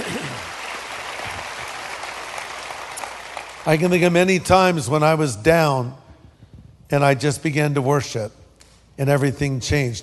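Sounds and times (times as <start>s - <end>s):
audience clapping: 0.0s - 5.1s
speech: 3.6s - 6.0s, 6.9s - 8.4s, 9.0s - 10.0s.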